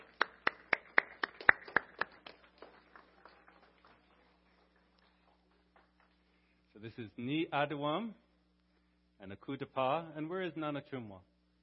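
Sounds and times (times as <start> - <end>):
audience applause: 0.0 - 6.4
speech: 6.8 - 8.2, 9.2 - 11.3.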